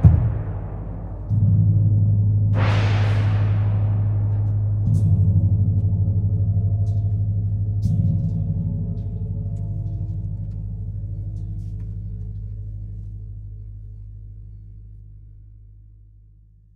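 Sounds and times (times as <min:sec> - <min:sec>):
percussion trio: 0:00.0 - 0:11.8.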